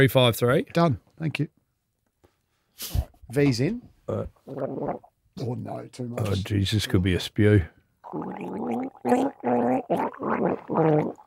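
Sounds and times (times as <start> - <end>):
speech: 0.0 - 1.6, 2.8 - 11.2
person gargling a tune through fizzy liquid: 4.4 - 5.1, 8.1 - 11.2.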